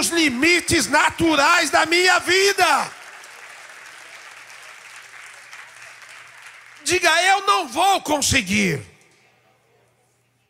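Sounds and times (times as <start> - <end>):
speech: 0.0 - 3.0, 6.9 - 8.9
audience applauding: 0.0 - 7.8.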